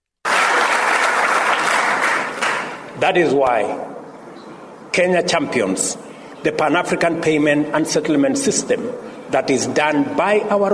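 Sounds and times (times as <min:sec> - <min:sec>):
audience clapping: 0:00.2 - 0:02.9
speech: 0:03.0 - 0:03.9, 0:05.0 - 0:10.7.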